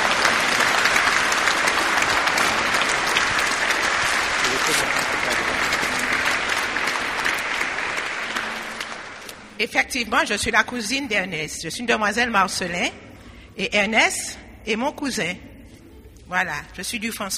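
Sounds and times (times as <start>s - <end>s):
large crowd applauding: 0.0s - 9.6s
speech: 9.6s - 13.0s, 13.6s - 15.5s, 16.3s - 17.3s.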